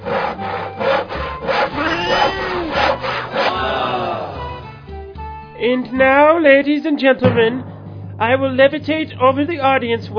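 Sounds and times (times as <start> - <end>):
hand saw rasping: 0.0 - 4.0
speech: 5.6 - 10.1.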